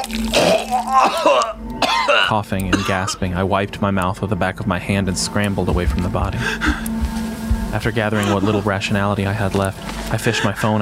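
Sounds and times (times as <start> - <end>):
person vomiting dinner onto a kitchen floor: 0.0 - 1.6
speech: 0.0 - 6.9, 7.7 - 10.8
laughter: 7.8 - 10.8.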